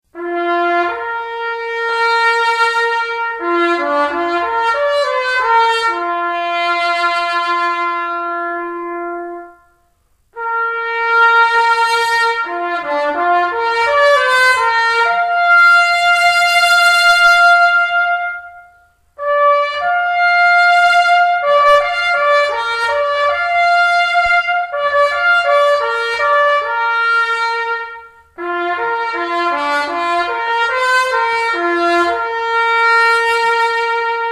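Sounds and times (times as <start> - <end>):
trumpet call: 0.1 - 34.3.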